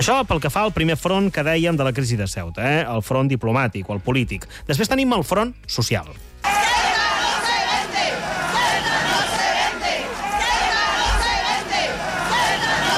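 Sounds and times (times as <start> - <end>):
speech: 0.0 - 6.7
large crowd of demonstrators shouting together: 6.4 - 12.9.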